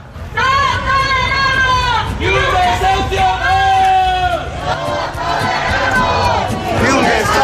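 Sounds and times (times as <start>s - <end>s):
crowd babble: 0.0s - 7.4s
protest rally crowd outside Urbagestión headquarters in Valladolid chanting slogans: 2.2s - 7.4s.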